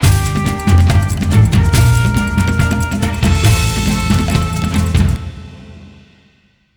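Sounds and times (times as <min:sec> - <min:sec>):
match lose jingle: 0:00.0 - 0:05.2.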